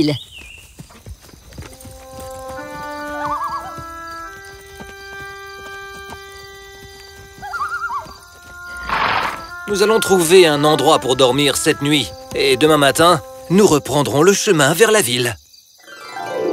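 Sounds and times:
speech: 0.0s - 0.3s, 9.7s - 15.4s
horses galloping with clip-clop hoofbeats: 0.0s - 14.7s
high wavering horse whinnies: 3.2s - 3.8s, 7.4s - 10.4s.

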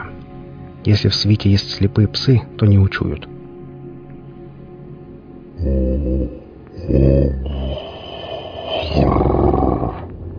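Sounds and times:
speech: 0.8s - 3.3s, 6.9s - 7.5s
heavy growling moan of a creature: 5.6s - 10.1s.

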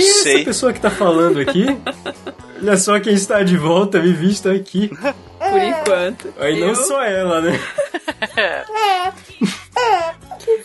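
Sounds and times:
speech: 0.0s - 10.2s
laughter: 0.6s - 3.3s, 4.8s - 10.0s
baby crying: 5.3s - 6.8s, 8.6s - 10.6s.

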